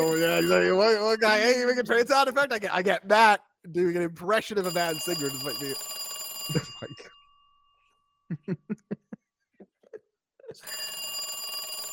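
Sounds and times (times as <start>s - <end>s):
phone ringing sound effect: 0.0s - 1.7s, 4.6s - 7.2s, 10.6s - 11.9s
speech: 0.2s - 7.1s, 8.3s - 9.0s
laughter: 6.5s - 7.1s, 8.3s - 10.6s.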